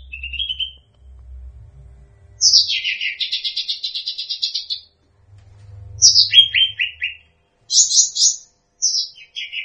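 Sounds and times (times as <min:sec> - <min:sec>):
bird song with buzzy trill: 0:00.0 - 0:01.2, 0:02.2 - 0:05.0, 0:05.9 - 0:09.6.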